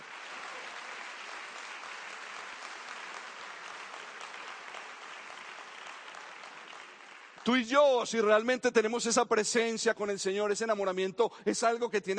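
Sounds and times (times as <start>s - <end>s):
crowd clapping: 0.0s - 8.4s
speech: 7.4s - 12.1s.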